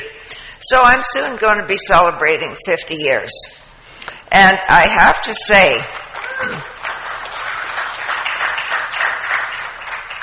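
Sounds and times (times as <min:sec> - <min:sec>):
speech: 0:00.6 - 0:03.6, 0:04.3 - 0:06.7
audience clapping: 0:05.9 - 0:10.2.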